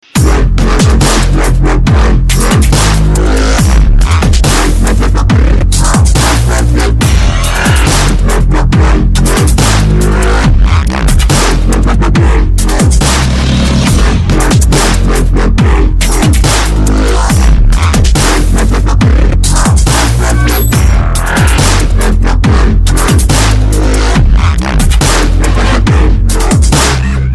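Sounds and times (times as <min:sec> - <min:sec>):
subsonic dubstep music: 0:00.0 - 0:27.3.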